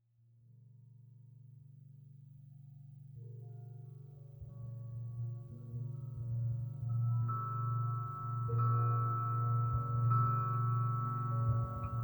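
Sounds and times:
guitar: 3.4s - 12.0s.

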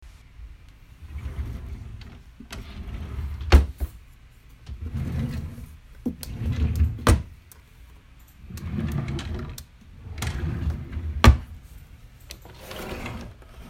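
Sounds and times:
drawers opening and closing: 1.0s - 4.0s, 4.6s - 7.4s, 8.4s - 11.7s, 12.3s - 13.6s.

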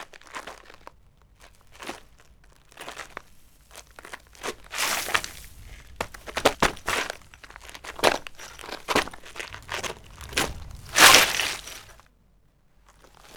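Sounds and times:
footstep: 4.0s - 12.0s.

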